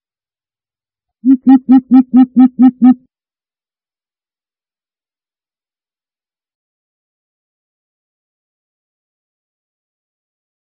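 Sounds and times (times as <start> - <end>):
greater coucal deep resonant hoots: 1.3 - 3.0.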